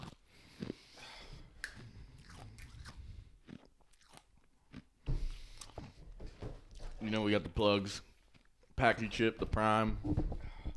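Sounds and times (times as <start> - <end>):
chewing an ice cube: 0.0 - 6.0, 7.9 - 8.8
speech: 7.0 - 8.1, 8.8 - 10.4.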